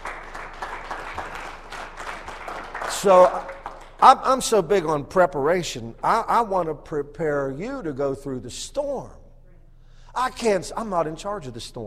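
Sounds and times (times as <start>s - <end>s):
audience applauding with hand claps: 0.0s - 4.2s
speech: 3.0s - 9.2s, 10.2s - 11.8s.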